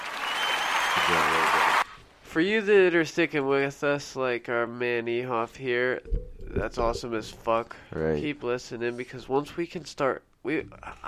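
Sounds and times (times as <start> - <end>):
applause: 0.0 - 2.0
speech: 2.3 - 11.0.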